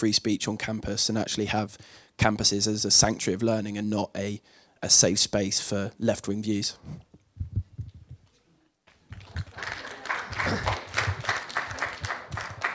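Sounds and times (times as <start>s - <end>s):
speech: 0.0s - 7.2s
audience applause: 9.1s - 12.7s.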